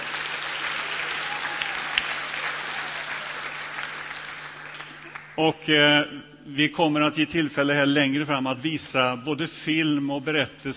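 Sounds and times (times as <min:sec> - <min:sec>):
audience applause: 0:00.0 - 0:05.4
speech: 0:05.4 - 0:10.7.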